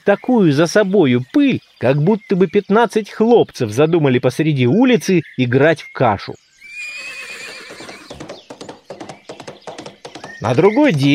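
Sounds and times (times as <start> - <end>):
speech: 0.0 - 6.4, 10.4 - 11.1
horse neighing: 6.6 - 8.3
hooves clopping: 7.2 - 11.1.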